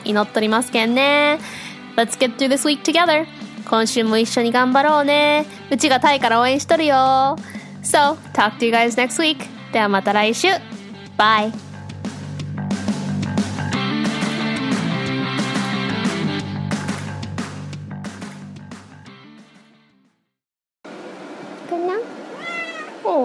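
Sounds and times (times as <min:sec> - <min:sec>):
upbeat music: 0:00.0 - 0:19.3
speech: 0:00.1 - 0:11.7
cat meowing for attention: 0:22.3 - 0:23.1.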